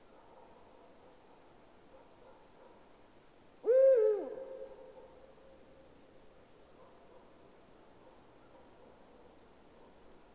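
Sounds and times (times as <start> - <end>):
Eurasian eagle-owl hooting: 3.6 - 4.6.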